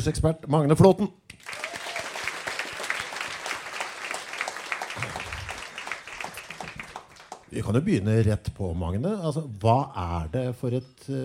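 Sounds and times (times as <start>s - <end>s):
speech: 0.0s - 1.4s, 7.6s - 11.2s
crowd applauding: 1.3s - 7.7s.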